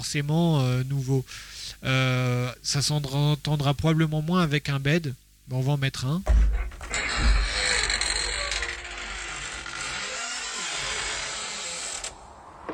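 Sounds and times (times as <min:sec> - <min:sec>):
speech: 0:00.0 - 0:06.7
door opening: 0:06.3 - 0:12.7.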